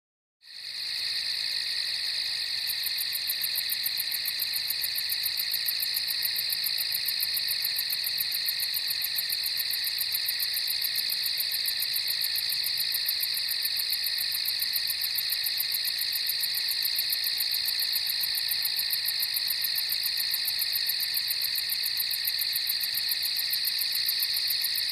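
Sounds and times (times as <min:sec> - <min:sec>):
several crickets trilling at night on a farm: 0:00.5 - 0:24.8.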